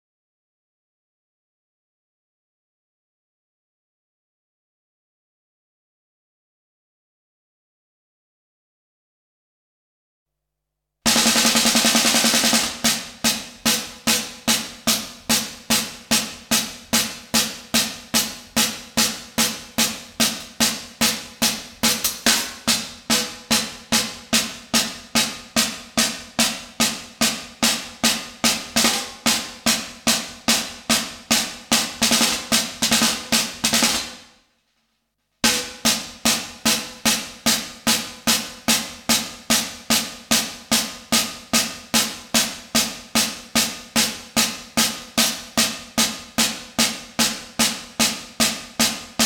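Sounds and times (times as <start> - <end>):
drums: 11.1 - 34.5, 35.4 - 49.2.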